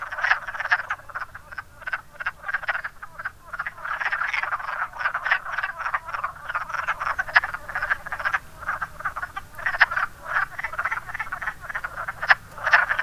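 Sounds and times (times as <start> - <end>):
wood frog calling: 0.0 - 13.0.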